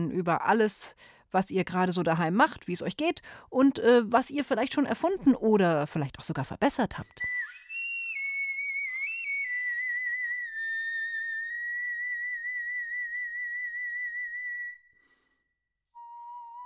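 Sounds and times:
speech: 0.0 - 7.4
bone flute playing: 7.3 - 14.9, 16.0 - 16.6.

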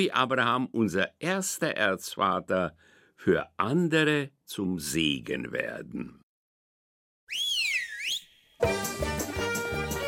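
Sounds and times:
speech: 0.0 - 6.2
loud bright whistle: 7.3 - 8.6
busy instrumental music: 8.6 - 10.0.

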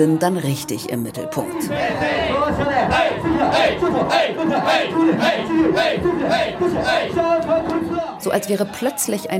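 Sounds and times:
speech: 0.0 - 9.3
group of male voices chanting a host club champagne call: 1.4 - 8.2.

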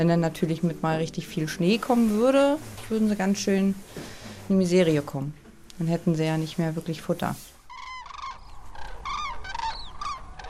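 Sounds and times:
speech: 0.0 - 7.5
common cranes calling as they take off at sunrise: 7.6 - 10.4.

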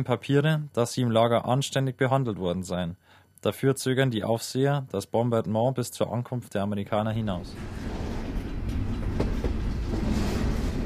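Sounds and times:
speech: 0.0 - 7.9
freight train rolling: 7.2 - 10.8.

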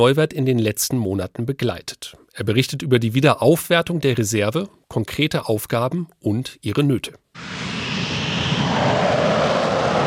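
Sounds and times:
speech: 0.0 - 7.7
two Eurofighter fighter jets taking off over the runway: 7.4 - 10.0.

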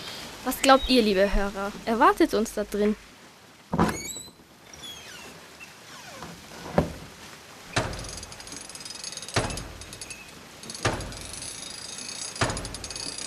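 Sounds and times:
speech: 0.4 - 3.1
heavy clunks of water mill machinery: 7.7 - 8.2, 10.8 - 11.2, 12.4 - 13.0
water mill gears and machinery turning: 7.7 - 13.2.

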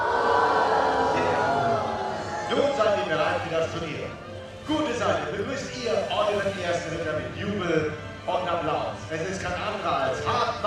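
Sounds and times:
crowd booing at a knights' tournament show: 0.0 - 3.1
speech: 3.4 - 10.6.

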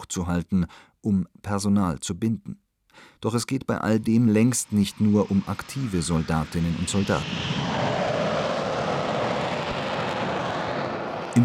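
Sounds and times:
speech: 0.1 - 8.0
fighter jets roaring over airfield at Lager Lechfeld near Augsburg: 4.4 - 11.4.

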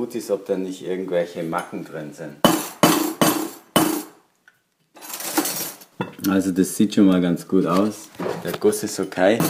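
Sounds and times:
speech: 0.0 - 2.7, 6.2 - 9.4
hammering round wire into a square bar: 2.4 - 4.2.

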